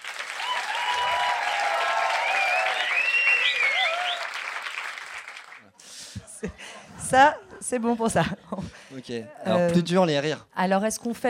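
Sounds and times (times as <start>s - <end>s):
crowd applauding: 0.0s - 5.8s
faint cheers and whistles: 0.4s - 4.4s
laughter: 6.0s - 8.8s
speech: 6.4s - 11.2s.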